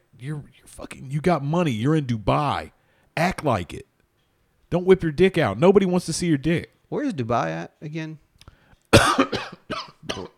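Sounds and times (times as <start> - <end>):
speech: 0.2 - 3.9, 4.7 - 8.2
person coughing after inhaling spit: 9.0 - 10.3.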